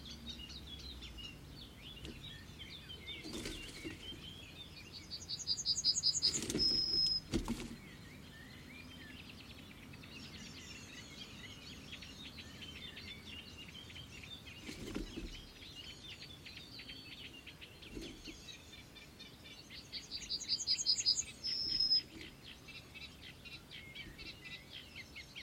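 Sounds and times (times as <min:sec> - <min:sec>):
ordinary birds singing: 0:00.0 - 0:25.4
steady outdoor hiss: 0:00.0 - 0:25.4
occasional thumps: 0:06.3 - 0:07.8.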